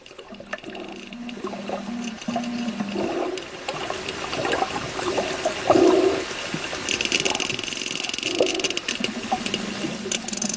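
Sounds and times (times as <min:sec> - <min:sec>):
sperm whale clicks underwater: 0:00.0 - 0:10.5.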